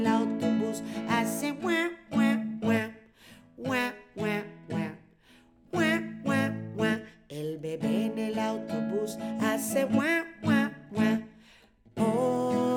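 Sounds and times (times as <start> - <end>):
children's song in Spanish: 0.0 - 3.0, 3.6 - 5.0, 5.7 - 11.3.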